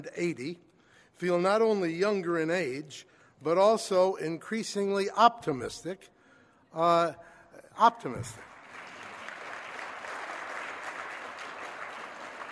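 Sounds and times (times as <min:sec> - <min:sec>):
speech: 0:00.0 - 0:08.5
audience applause: 0:08.4 - 0:12.5.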